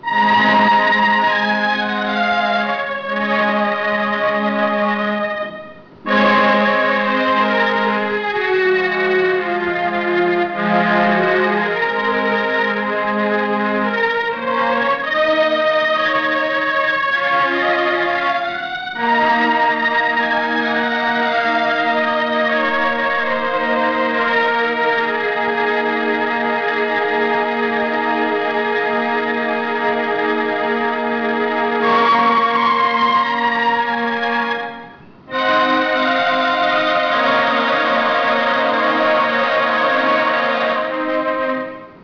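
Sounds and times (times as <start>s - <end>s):
organ: 0.0s - 42.0s.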